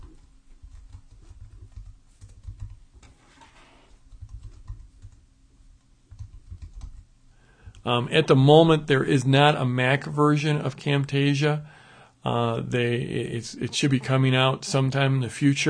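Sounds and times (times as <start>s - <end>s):
typing on a computer keyboard: 0.0s - 3.2s, 4.1s - 5.2s, 6.1s - 7.1s
speech: 7.8s - 15.6s.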